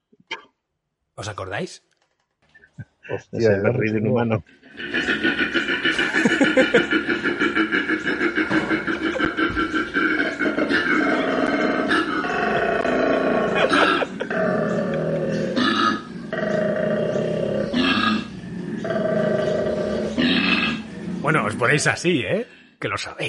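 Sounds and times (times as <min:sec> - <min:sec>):
speech: 0:01.2 - 0:01.9, 0:02.8 - 0:05.4, 0:06.5 - 0:07.7, 0:21.6 - 0:23.2
laughter: 0:04.7 - 0:11.4, 0:12.2 - 0:15.5
male koala bellowing during mating: 0:04.7 - 0:21.8.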